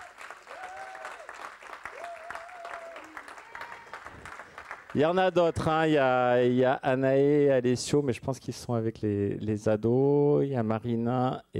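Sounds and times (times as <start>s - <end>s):
audience applauding: 0.0s - 6.0s
speech: 4.9s - 11.5s.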